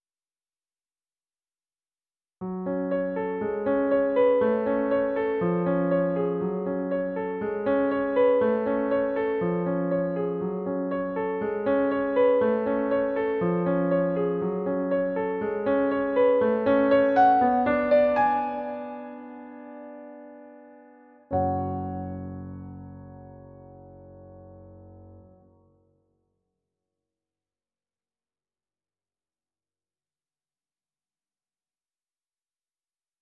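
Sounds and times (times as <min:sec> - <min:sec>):
piano piece: 0:02.4 - 0:26.0.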